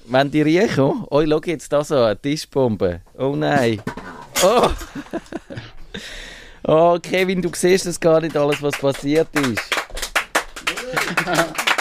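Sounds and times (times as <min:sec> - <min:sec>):
speech: 0:00.1 - 0:09.8, 0:11.0 - 0:11.6
laughter: 0:04.4 - 0:05.7, 0:10.6 - 0:11.7
applause from visitors: 0:08.1 - 0:11.7.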